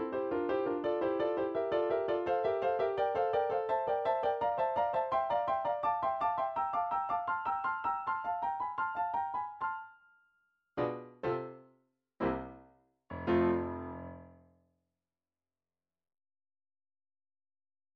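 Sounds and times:
midi piano studies: 0:00.0 - 0:10.0, 0:10.8 - 0:14.5.

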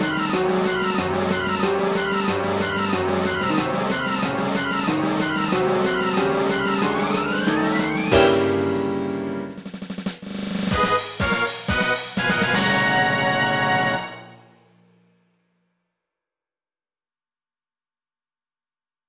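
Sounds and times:
malevolent orchestral boss remix: 0:00.0 - 0:09.8, 0:10.7 - 0:14.6.

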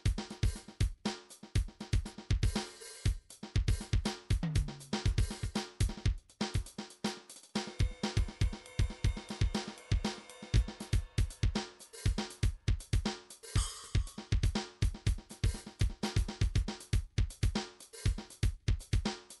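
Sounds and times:
MIDI drums and percussion: 0:00.0 - 0:19.3.

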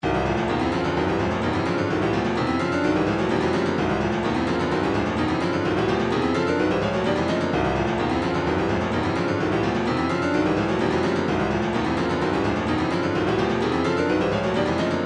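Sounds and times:
retro funk MIDI music: 0:00.0 - 0:15.0.

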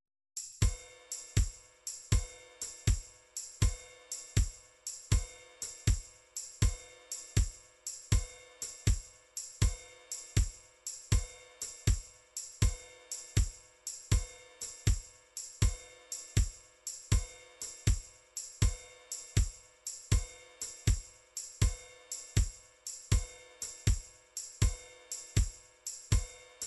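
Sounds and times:
MIDI drum patterns: 0:00.4 - 0:26.6.

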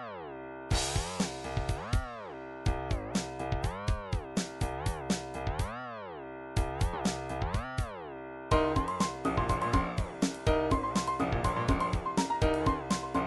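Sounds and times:
trip hop music: 0:00.7 - 0:05.8, 0:06.5 - 0:13.2.

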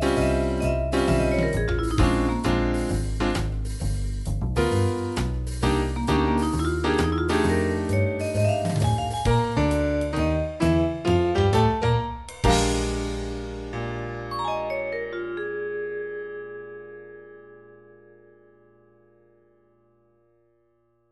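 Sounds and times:
jazz blues music: 0:00.0 - 0:15.4.

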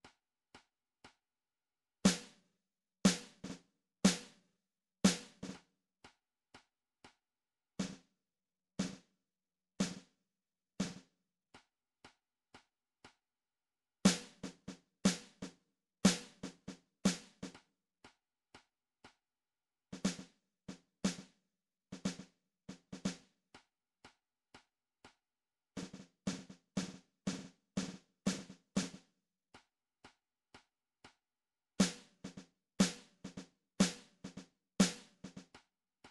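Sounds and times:
snare drum: 0:02.1 - 0:02.4, 0:03.1 - 0:04.4, 0:05.1 - 0:05.6, 0:14.1 - 0:15.5, 0:16.1 - 0:17.6, 0:20.0 - 0:20.3, 0:21.0 - 0:21.3, 0:22.0 - 0:23.2, 0:25.8 - 0:29.1, 0:31.8 - 0:35.5.

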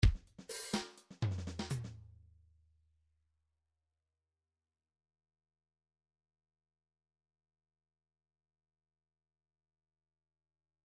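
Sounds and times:
MIDI funk drum fills: 0:00.0 - 0:02.0.

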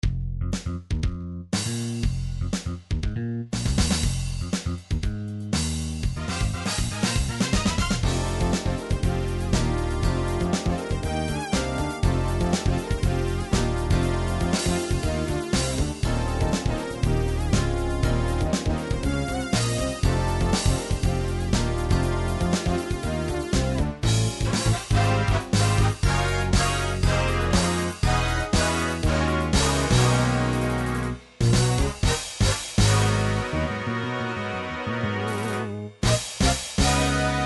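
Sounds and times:
jazz pop music: 0:00.0 - 0:37.4.

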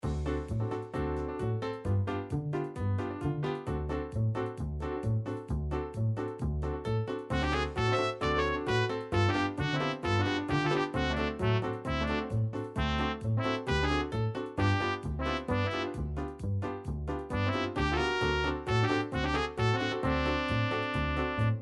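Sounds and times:
jazz meets klezmer MIDI music: 0:00.0 - 0:21.6.

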